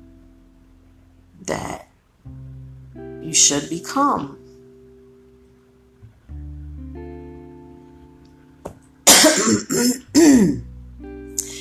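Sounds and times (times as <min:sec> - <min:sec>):
low humming tones: 0:00.0 - 0:11.5
speech: 0:01.4 - 0:01.9, 0:03.3 - 0:04.4
person with a dry throat coughing and clearing throat: 0:09.1 - 0:10.6.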